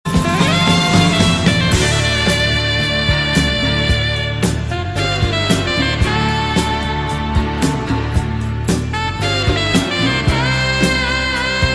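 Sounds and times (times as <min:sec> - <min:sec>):
saxophone instrumental: 0:00.0 - 0:11.7.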